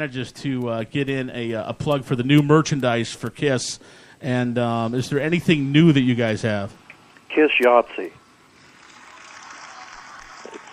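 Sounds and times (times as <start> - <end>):
speech: 0.0 - 8.2
crowd applauding: 8.6 - 10.7.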